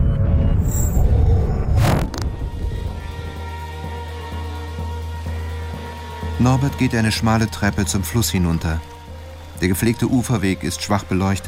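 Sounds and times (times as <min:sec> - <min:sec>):
thunder rumbling after lightning: 0:00.0 - 0:03.6
speech: 0:06.4 - 0:08.9, 0:09.6 - 0:11.4.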